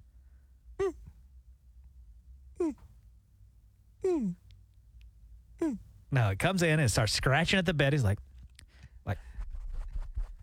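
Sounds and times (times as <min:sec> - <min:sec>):
person imitating a dog's moan: 0:00.8 - 0:01.1, 0:02.6 - 0:02.9, 0:04.0 - 0:04.4, 0:05.6 - 0:05.8
speech: 0:04.2 - 0:04.4, 0:05.7 - 0:08.3, 0:09.1 - 0:09.3.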